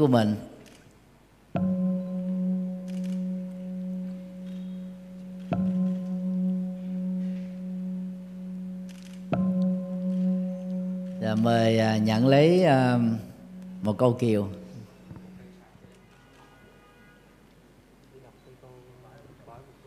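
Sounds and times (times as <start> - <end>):
speech: 0.0 - 0.5, 11.4 - 14.6
bell struck: 1.6 - 15.5.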